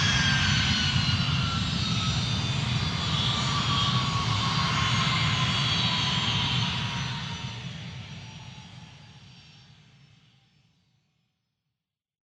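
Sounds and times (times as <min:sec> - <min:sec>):
airplane jet engine revving: 0:00.0 - 0:07.7.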